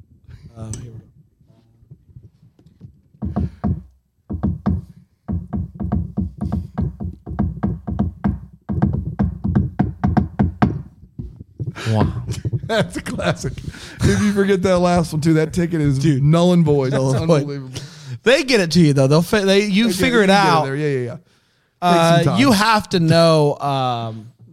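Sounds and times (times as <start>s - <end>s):
speech: 0.6s - 1.1s, 11.9s - 24.3s
knocking pattern on a door: 2.8s - 13.4s
laughter: 11.8s - 15.1s, 16.7s - 17.8s.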